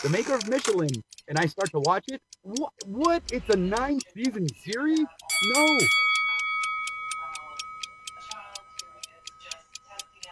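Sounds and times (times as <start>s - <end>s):
speech: 0.0s - 6.1s
bell ringing with rapid metallic strikes: 5.3s - 9.5s.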